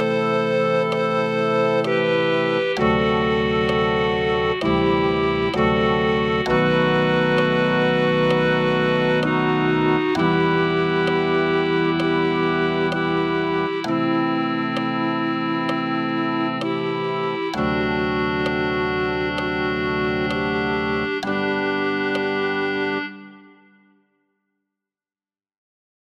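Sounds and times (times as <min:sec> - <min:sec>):
clarinet: 0:00.0 - 0:23.9.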